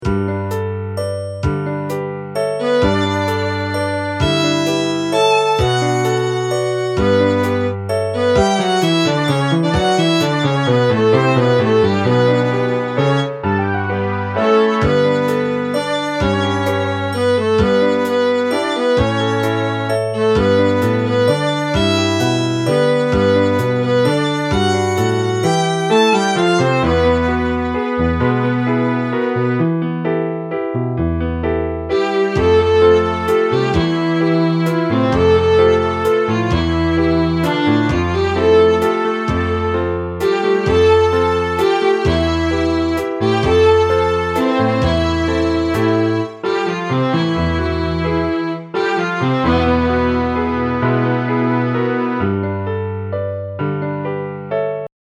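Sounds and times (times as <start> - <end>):
waltz music: 0.0 - 54.9.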